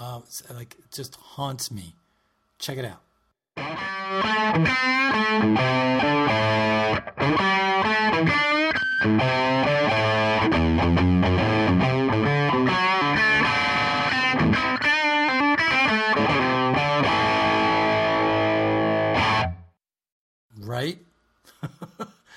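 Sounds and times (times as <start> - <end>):
speech: 0.2 - 2.0, 2.6 - 8.3
electric guitar through tube amp playing overdriven riff: 3.6 - 19.7
laughter: 21.5 - 22.2.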